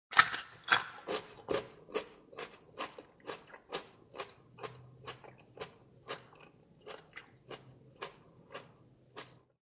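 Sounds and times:
biting and chewing a fresh piece of carrot: 0.1 - 9.6.

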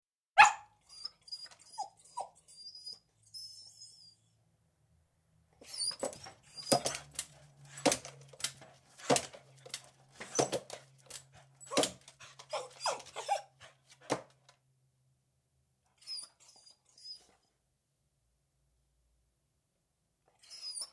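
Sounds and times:
beagle whining and jumping up at a door indoors: 0.4 - 4.4, 5.6 - 8.1, 11.6 - 13.7, 15.9 - 17.5, 20.3 - 20.9.

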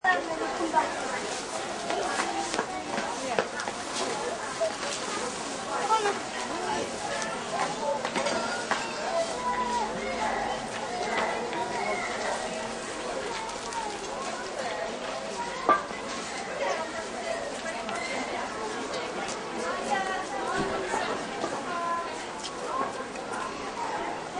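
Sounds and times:
outdoor market ambience: 0.0 - 24.3
moderate pedestrian traffic: 0.4 - 17.4.

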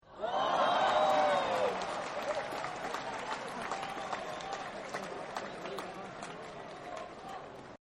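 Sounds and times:
crowd whooping: 0.1 - 4.8
applause: 0.3 - 7.7.

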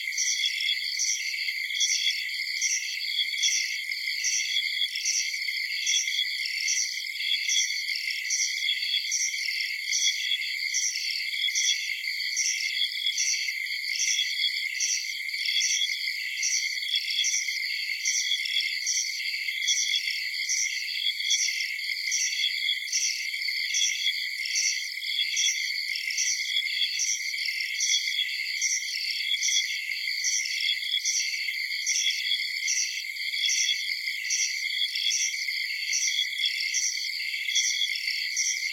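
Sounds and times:
insects chirping in the countryside at night: 0.1 - 38.7.

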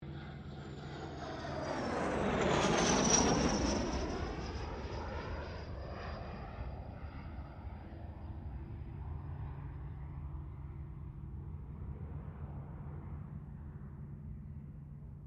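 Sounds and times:
distant CA-27 Sabre aircraft passing: 0.0 - 15.2.

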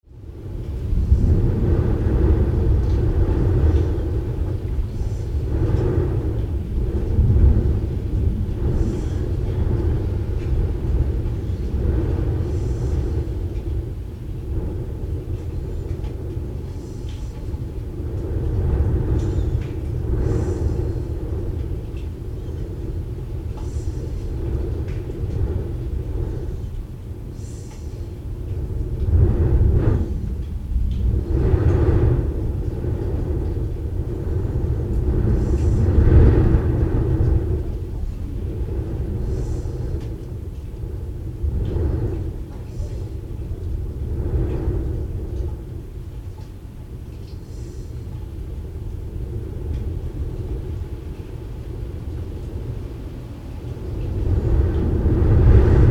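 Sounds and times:
blustery wind in tall chimney stack: 0.0 - 55.8.

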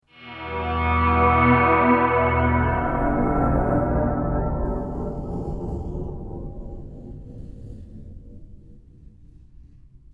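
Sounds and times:
magical reveal guitar chord swell: 0.0 - 5.4.

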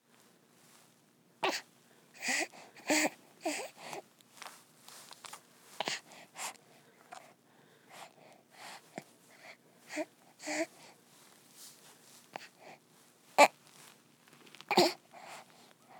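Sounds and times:
human baby fussing: 1.4 - 4.0, 5.8 - 6.5, 9.9 - 10.8, 14.7 - 15.4.

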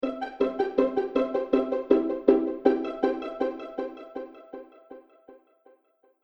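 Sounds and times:
pizzicato transition: 0.0 - 5.0.

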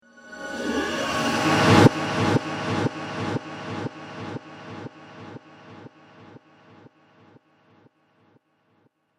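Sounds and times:
cinematic riser with delay: 0.4 - 7.4.

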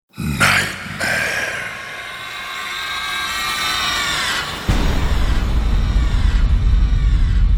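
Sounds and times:
deep sinister voice speaking: 0.1 - 2.6
eerie nightmare screams: 0.1 - 7.4.

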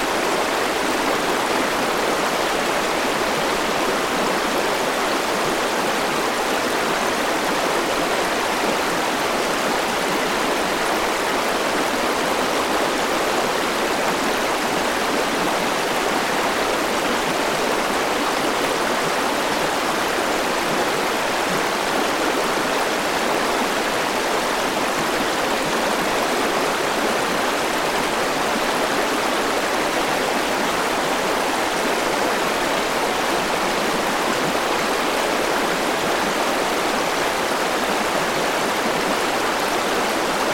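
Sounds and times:
river water flowing: 0.0 - 40.5.

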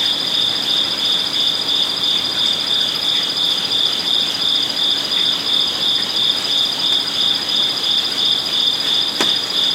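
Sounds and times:
crickets trilling at night in a zen garden beside a koi pond in Kyoto, Japan: 0.0 - 9.7.

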